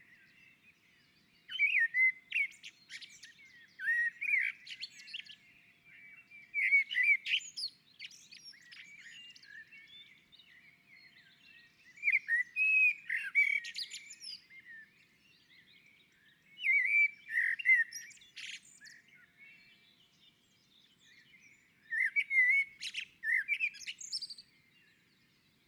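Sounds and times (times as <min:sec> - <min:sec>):
common blackbird singing: 0:00.0 - 0:25.6.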